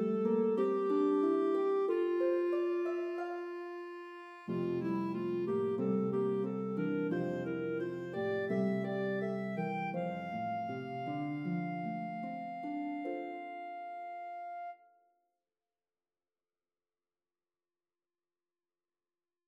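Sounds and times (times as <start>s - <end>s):
harp melody: 0.0s - 14.8s
clarinet: 0.0s - 15.0s.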